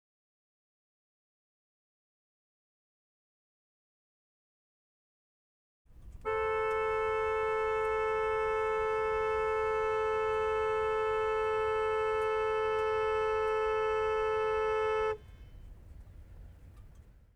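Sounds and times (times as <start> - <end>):
Lamborghini Aventador horn: 5.9 - 17.1.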